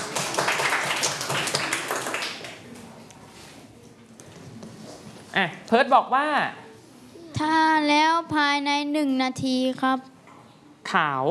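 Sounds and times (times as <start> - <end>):
group of students clapping: 0.0 - 2.8
speech: 5.4 - 6.6, 7.4 - 10.1, 10.9 - 11.2.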